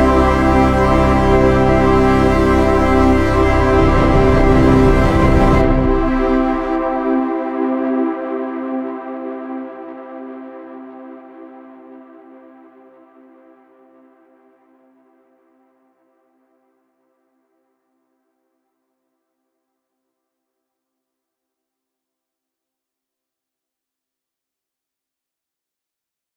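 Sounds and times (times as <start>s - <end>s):
synthwave cover: 0.0s - 10.7s.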